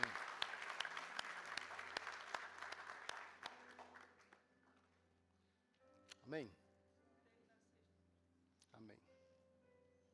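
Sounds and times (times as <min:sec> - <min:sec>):
audience applauding: 0:00.0 - 0:04.4
speech: 0:06.3 - 0:06.6.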